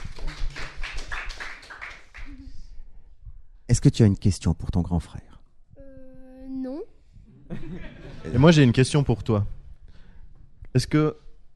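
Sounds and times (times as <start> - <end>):
audience applause: 0.0 - 2.4
speech: 3.8 - 5.4, 8.3 - 9.6, 10.8 - 11.2
laughter: 7.4 - 8.8.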